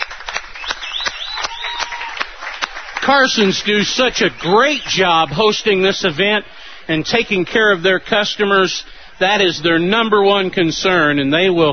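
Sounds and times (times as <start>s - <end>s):
crowd clapping: 0.0s - 5.9s
thin high whistle: 0.6s - 2.1s
speech: 3.0s - 11.7s.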